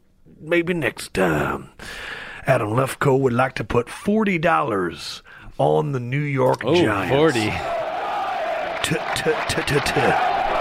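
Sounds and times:
speech: 0.2s - 7.8s, 8.9s - 10.3s
stadium crowd cheering: 6.8s - 10.5s.

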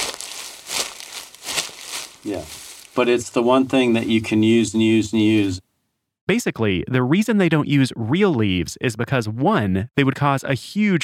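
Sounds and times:
crumpled half-inch magnetic tape crunching: 0.0s - 3.0s
speech: 2.2s - 5.6s, 6.3s - 11.0s.

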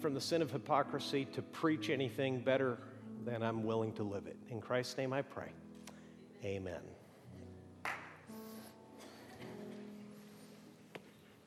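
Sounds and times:
speech: 0.0s - 5.6s, 6.4s - 7.0s
single hand clap: 7.8s - 8.3s.

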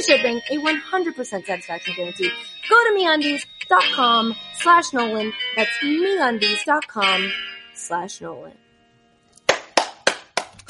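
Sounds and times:
speech: 0.0s - 8.6s
hand claps: 9.4s - 10.6s.

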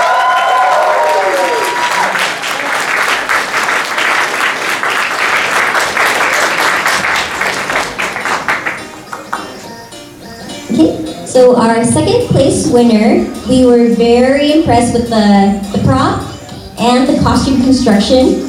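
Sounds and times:
crowd applauding: 0.0s - 9.6s
speech: 11.4s - 16.2s, 16.8s - 18.4s.

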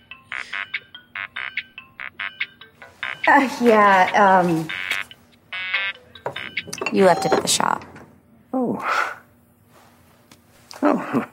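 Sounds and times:
phone ringtone: 0.0s - 7.8s
speech: 3.2s - 4.8s, 6.9s - 7.8s.

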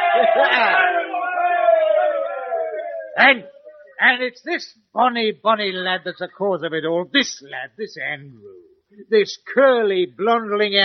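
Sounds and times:
group of men cheering: 0.0s - 4.0s
speech: 0.2s - 0.8s, 3.2s - 10.8s.

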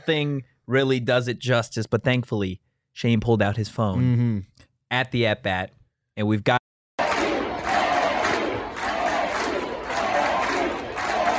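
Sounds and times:
speech: 0.0s - 6.6s
huge stadium crowd roaring and cheering a grand slam: 7.0s - 11.3s.

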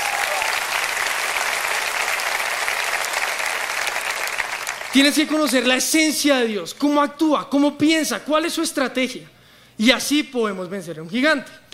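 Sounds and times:
audience applause: 0.0s - 5.6s
speech: 5.0s - 11.6s.

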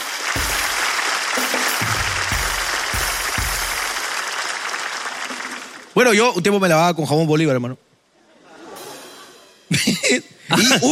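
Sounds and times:
audience applause: 0.0s - 6.0s
speech: 6.0s - 7.9s, 10.1s - 10.9s
laughter: 8.2s - 10.7s.

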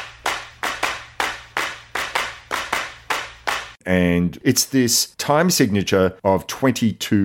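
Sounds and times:
crisp hand claps in odd meter: 0.0s - 3.8s
speech: 3.8s - 7.2s.

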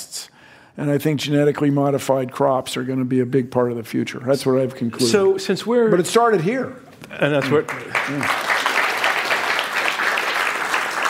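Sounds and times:
speech: 0.8s - 8.4s
audience applause: 7.3s - 11.0s.

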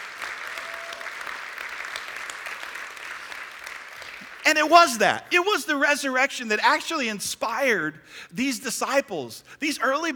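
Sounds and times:
audience clapping: 0.0s - 5.1s
speech: 4.5s - 10.1s.

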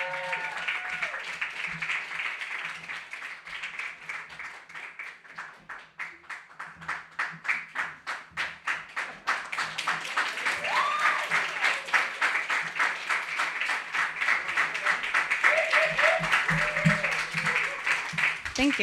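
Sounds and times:
faint voices and cheers: 0.0s - 1.4s, 10.2s - 12.5s, 14.4s - 18.8s
crowd applauding: 0.0s - 18.8s.

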